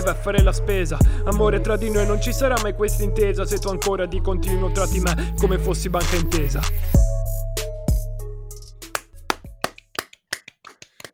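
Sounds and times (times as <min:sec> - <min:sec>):
speech: 0:00.1 - 0:07.1
scattered applause from a few pairs of hands: 0:09.3 - 0:11.1.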